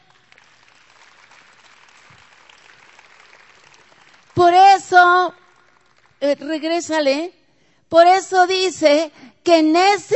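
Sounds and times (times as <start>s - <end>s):
crowd applause: 0.0s - 4.6s, 5.4s - 6.2s
speech: 4.5s - 5.4s, 6.2s - 10.1s.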